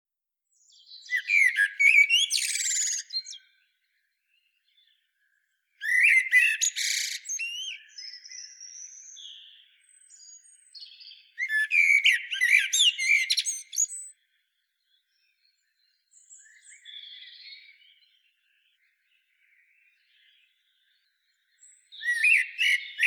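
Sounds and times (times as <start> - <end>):
common blackbird calls: 0.9 - 3.6, 5.8 - 14.1, 21.6 - 23.0.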